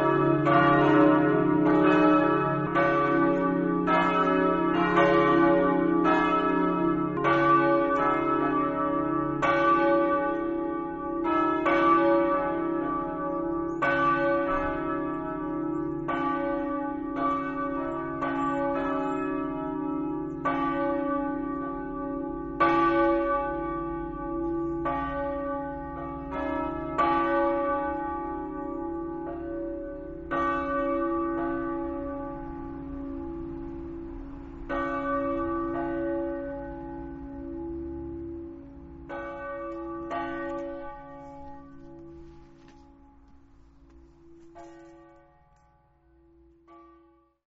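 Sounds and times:
bells: 0.0 - 47.4.

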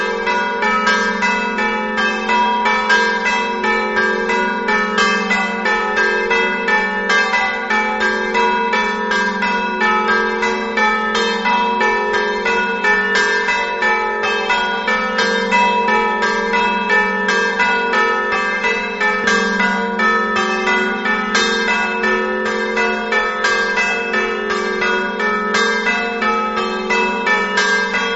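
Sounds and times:
bells ringing: 0.0 - 28.1.

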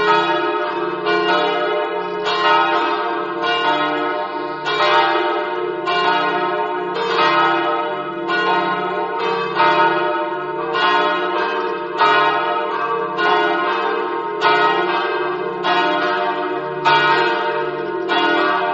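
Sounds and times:
church bells ringing: 0.0 - 18.7.

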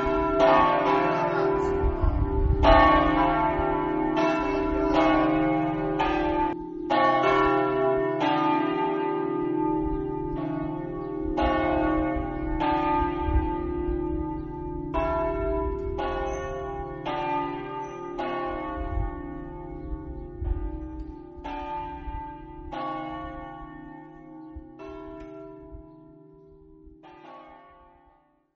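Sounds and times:
bells in Forgaria: 0.0 - 28.0.

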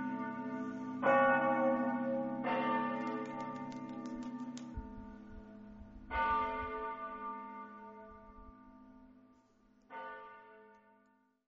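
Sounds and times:
church bells ringing in Mortegliano: 0.0 - 11.4.

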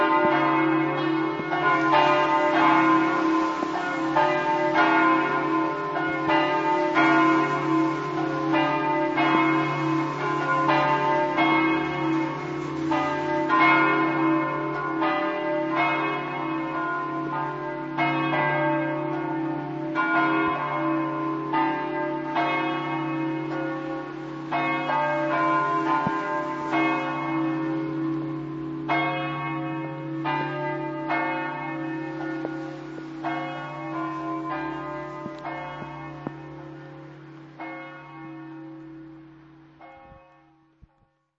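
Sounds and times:
church bells ringing in Povoletto: 0.0 - 41.2.

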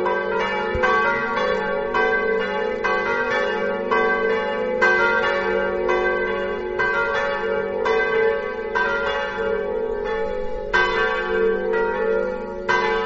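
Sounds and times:
parish church bells: 0.0 - 13.0.

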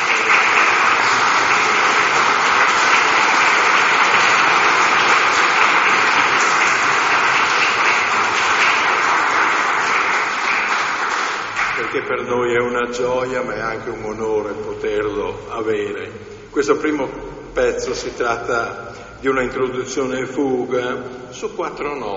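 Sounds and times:
audience applause: 0.0 - 12.1
speech: 12.1 - 22.1.

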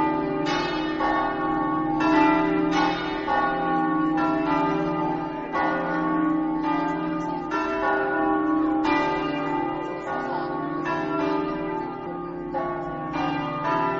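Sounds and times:
bells ringing in Forgaria: 0.0 - 13.9.

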